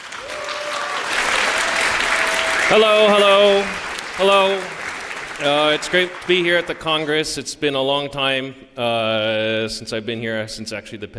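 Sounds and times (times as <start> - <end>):
audience applause: 0.0 - 7.3
speech: 2.7 - 4.8, 5.4 - 11.1.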